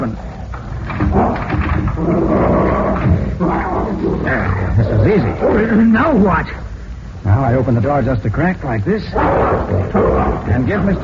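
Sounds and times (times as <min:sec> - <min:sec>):
dog growling: 0:00.0 - 0:06.2, 0:09.1 - 0:11.0
speech: 0:05.0 - 0:06.6, 0:07.2 - 0:11.0.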